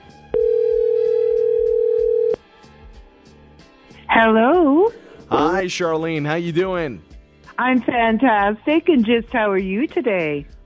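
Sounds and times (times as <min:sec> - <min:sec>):
telephone call ringing out: 0:00.4 - 0:02.4
speech: 0:04.2 - 0:04.6, 0:05.6 - 0:10.6.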